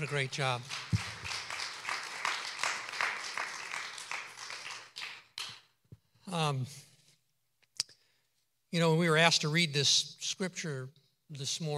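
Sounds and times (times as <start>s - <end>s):
speech: 0.0s - 1.1s, 6.3s - 6.9s, 8.7s - 11.7s
round of applause: 0.0s - 5.7s.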